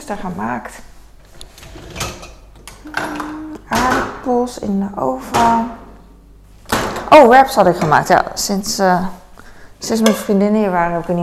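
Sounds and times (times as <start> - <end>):
speech: 0.1 - 0.9, 2.8 - 5.8, 7.1 - 9.2, 9.8 - 11.2
brief hum: 2.5 - 3.8
washing up glasses and dishes: 2.8 - 3.6.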